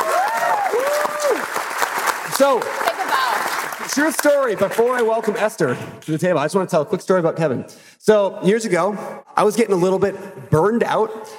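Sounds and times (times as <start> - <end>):
wavering cheer: 0.0 - 1.7, 2.4 - 3.8
audience applause: 0.0 - 5.5
speech: 2.4 - 11.3.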